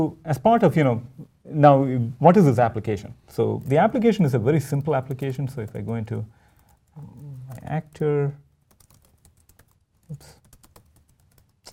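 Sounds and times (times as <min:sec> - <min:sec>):
speech: 0:00.0 - 0:06.4, 0:07.0 - 0:08.4, 0:10.1 - 0:10.4
typing on a computer keyboard: 0:03.6 - 0:08.0, 0:08.6 - 0:11.7.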